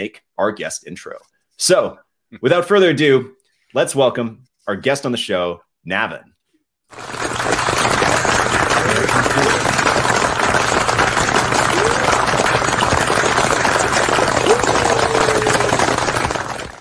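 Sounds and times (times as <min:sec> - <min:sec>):
speech: 0:00.0 - 0:06.3, 0:06.9 - 0:08.2
community clapping compiled into applause intro: 0:06.9 - 0:16.7.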